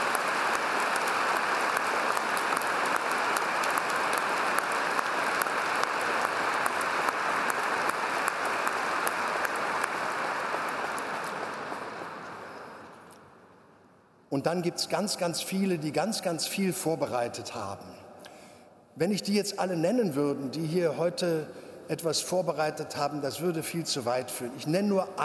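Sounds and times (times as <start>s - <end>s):
applause for the choirs: 0.0s - 13.2s
speech: 14.4s - 18.0s, 19.0s - 25.2s.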